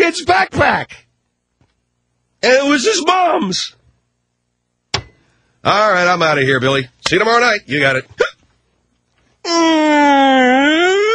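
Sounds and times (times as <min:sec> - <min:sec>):
speech: 0:00.1 - 0:01.0, 0:02.4 - 0:03.8, 0:05.6 - 0:08.2, 0:09.5 - 0:11.0
siren: 0:10.2 - 0:11.1.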